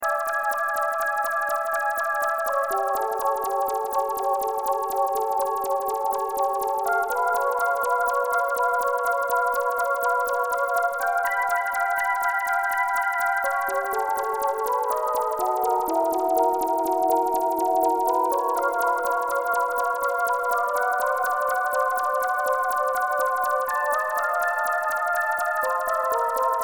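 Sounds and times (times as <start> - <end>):
synth arpeggio: 0.0 - 26.6.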